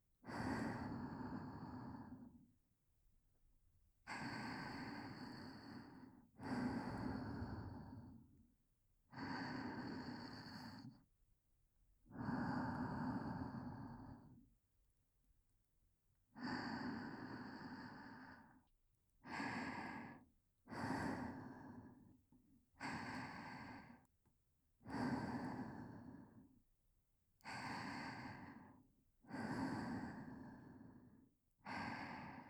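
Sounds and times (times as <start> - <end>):
whispered breathing: 0.2 - 2.5, 4.1 - 8.4, 9.1 - 11.1, 12.1 - 14.4, 16.4 - 24.1, 24.8 - 26.6, 27.4 - 32.4.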